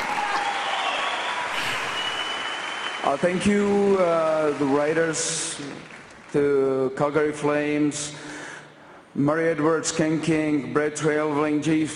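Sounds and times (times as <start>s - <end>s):
audience clapping: 0.0s - 6.8s
speech: 3.0s - 8.3s, 9.2s - 11.9s.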